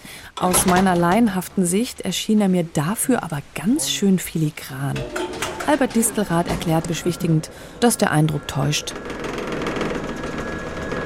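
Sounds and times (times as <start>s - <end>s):
speech: 0.4s - 9.2s
construction elevator motor running: 4.9s - 11.0s.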